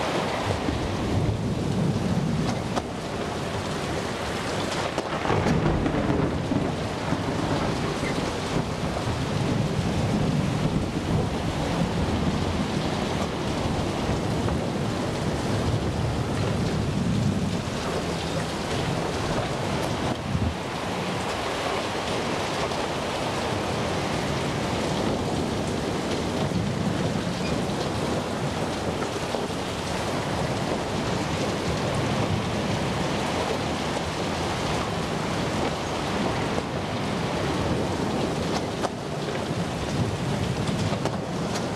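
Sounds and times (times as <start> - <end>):
sea storm ambience: 0.0 - 41.7.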